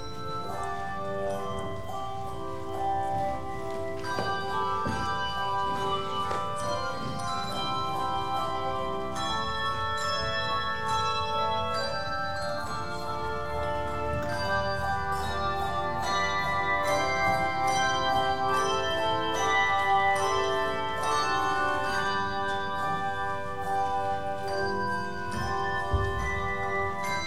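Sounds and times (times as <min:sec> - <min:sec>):
handbells ringing: 0:00.0 - 0:27.2.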